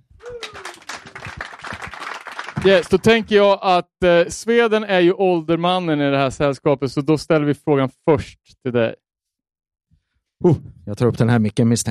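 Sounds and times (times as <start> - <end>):
audience applause: 0.2 - 3.3
speech: 2.6 - 9.0, 10.4 - 11.9.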